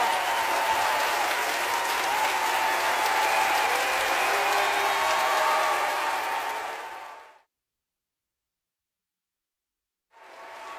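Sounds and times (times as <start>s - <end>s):
large audience applause: 0.0s - 7.4s, 10.2s - 10.7s.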